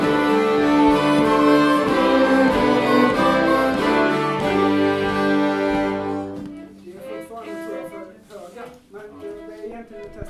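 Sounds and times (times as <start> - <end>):
polska folk dance tune: 0.0 - 8.2.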